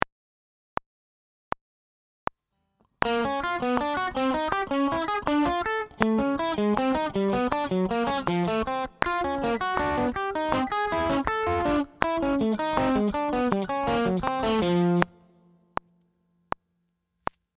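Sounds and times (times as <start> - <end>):
guitar exercise: 2.8 - 16.6.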